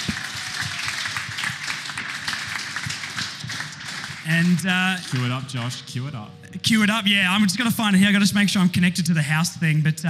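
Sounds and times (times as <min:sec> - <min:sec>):
audience applause: 0:00.0 - 0:05.7
speech: 0:04.2 - 0:10.0.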